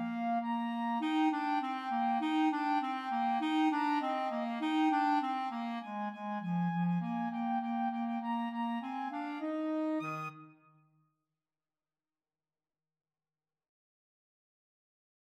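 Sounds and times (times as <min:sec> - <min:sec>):
clarinet duet: 0:00.0 - 0:10.7.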